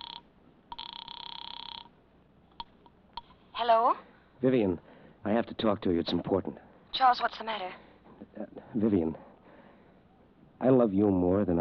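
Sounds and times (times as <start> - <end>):
telephone ringing from a phone booth call: 0.0 - 2.0
speech: 3.6 - 7.8, 8.7 - 9.3, 10.6 - 11.5.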